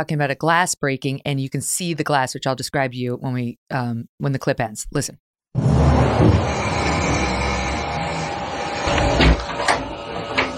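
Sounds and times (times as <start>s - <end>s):
speech: 0.0s - 7.0s
closet door opening: 5.7s - 10.5s.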